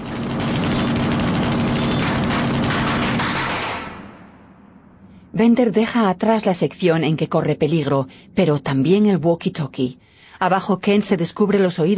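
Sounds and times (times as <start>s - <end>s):
submachine gun firing bursts by a robber in a 1998 action crime film: 0.0s - 4.1s
speech: 5.4s - 11.9s.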